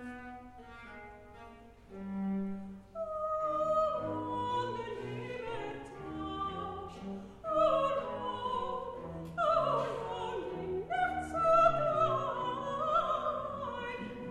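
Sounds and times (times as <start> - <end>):
soprano singing recitative: 2.9 - 14.3.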